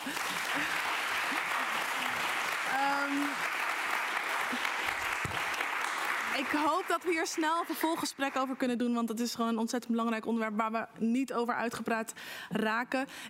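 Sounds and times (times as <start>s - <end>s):
audience applause: 0.0s - 8.7s
speech: 0.1s - 0.9s, 2.8s - 3.6s, 6.5s - 13.2s.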